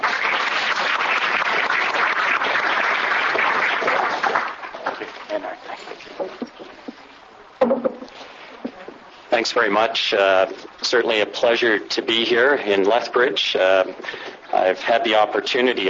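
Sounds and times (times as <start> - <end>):
audience applause welcoming a speaker at an event in Lethbridge: 0.0 - 5.0
speech: 9.4 - 15.8.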